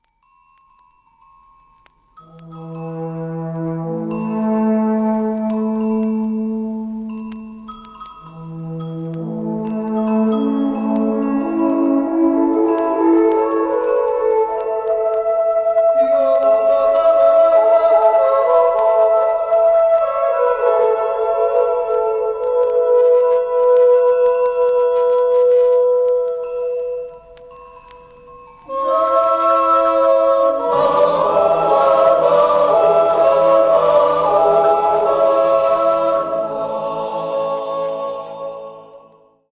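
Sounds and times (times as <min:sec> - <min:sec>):
alphorn: 0:02.2 - 0:39.2
person yodeling: 0:11.4 - 0:26.4, 0:28.7 - 0:38.9.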